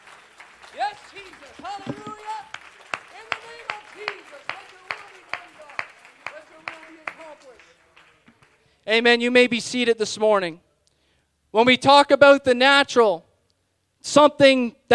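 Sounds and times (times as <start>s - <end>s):
audience clapping hands in praise in unison: 0.0s - 8.8s
speech: 1.0s - 2.5s, 8.9s - 10.6s, 11.5s - 13.3s, 14.0s - 14.9s.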